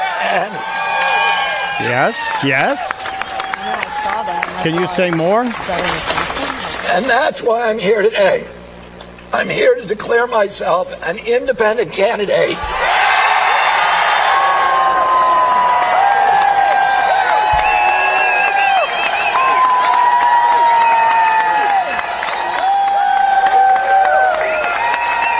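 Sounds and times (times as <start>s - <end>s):
rally crowd applauding and cheering: 0.0s - 7.3s, 12.5s - 25.3s
speech: 0.2s - 1.0s, 1.8s - 3.0s, 3.6s - 8.6s, 9.3s - 12.8s.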